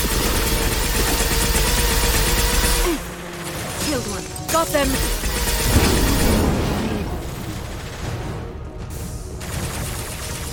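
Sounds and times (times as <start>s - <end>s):
video game gunfire: 0.0s - 8.5s, 9.4s - 10.5s.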